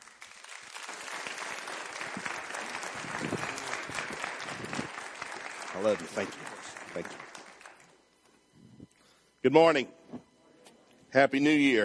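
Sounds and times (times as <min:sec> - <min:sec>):
audience applause welcoming a guest preacher at a church New Year service: 0:00.0 - 0:08.0
speech: 0:05.8 - 0:07.2, 0:09.4 - 0:10.0, 0:11.1 - 0:11.8.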